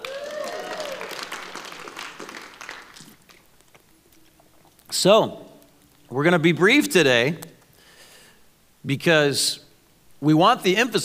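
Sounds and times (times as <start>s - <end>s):
whooping cheer: 0.0s - 2.8s
audience applause: 0.0s - 3.4s
speech: 4.9s - 5.4s, 6.1s - 7.5s, 8.8s - 9.6s, 10.2s - 11.0s.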